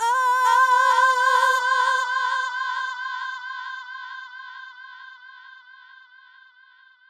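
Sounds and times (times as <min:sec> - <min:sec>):
effected female vocals: 0:00.0 - 0:03.5.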